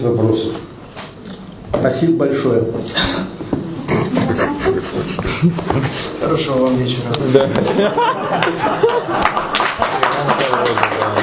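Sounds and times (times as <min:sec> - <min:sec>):
speech: 0:00.0 - 0:00.7, 0:01.7 - 0:03.4, 0:04.4 - 0:09.4
laughter: 0:03.8 - 0:06.5, 0:07.4 - 0:10.6
audience clapping: 0:08.3 - 0:11.2.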